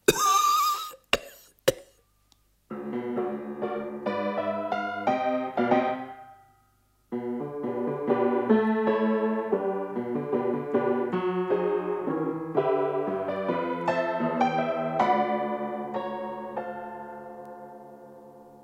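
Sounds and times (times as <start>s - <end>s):
man coughing: 0.0s - 2.0s
music with steady sustained tones: 2.7s - 18.6s.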